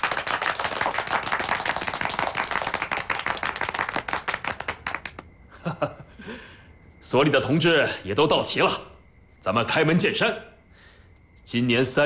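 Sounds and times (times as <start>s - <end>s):
crowd applauding: 0.0s - 5.3s
speech: 5.7s - 10.5s, 11.5s - 12.0s.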